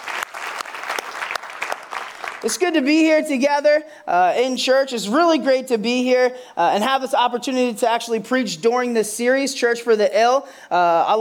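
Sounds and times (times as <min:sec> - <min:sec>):
crowd applauding: 0:00.0 - 0:02.6
speech: 0:02.4 - 0:11.1.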